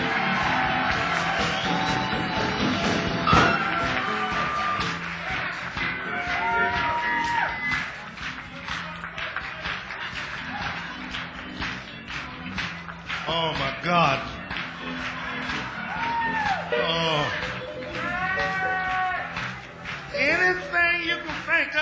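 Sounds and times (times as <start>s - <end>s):
audience cheering: 0.0s - 8.0s, 15.0s - 21.0s
audience applause: 0.0s - 21.7s.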